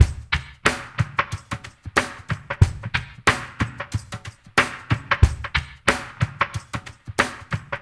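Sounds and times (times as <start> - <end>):
drum mix in the right channel: 0.0 - 7.8.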